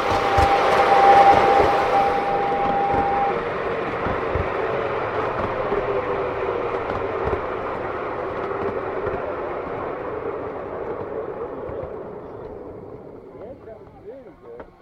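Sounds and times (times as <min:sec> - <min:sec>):
long train whistle: 0:00.0 - 0:03.6
model railway steam train running: 0:00.0 - 0:14.7.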